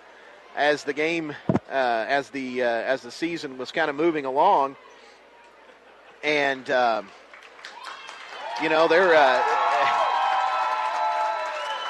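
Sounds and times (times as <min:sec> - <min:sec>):
speech: 0:00.6 - 0:04.9, 0:06.2 - 0:07.2, 0:08.6 - 0:09.6
crowd clapping and cheering for the Day School Eagles at a game: 0:07.0 - 0:11.8.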